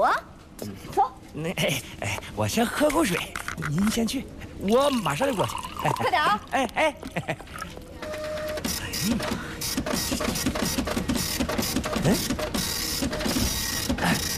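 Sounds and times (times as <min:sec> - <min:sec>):
speech: 0:00.0 - 0:07.8, 0:09.0 - 0:10.8, 0:12.0 - 0:12.6
printer printing a document: 0:08.0 - 0:14.3.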